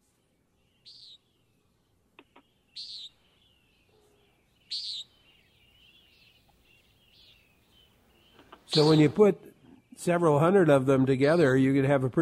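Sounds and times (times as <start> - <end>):
quiet hiss: 0.0 - 10.3
common nighthawk peent calls: 0.8 - 1.2, 2.2 - 3.3, 4.7 - 9.2
speech: 8.7 - 12.2.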